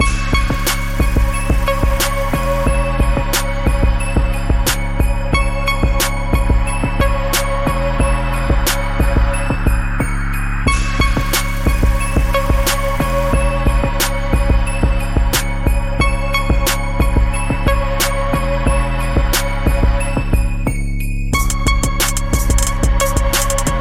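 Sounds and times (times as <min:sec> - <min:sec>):
hip hop music: 0:00.0 - 0:23.7.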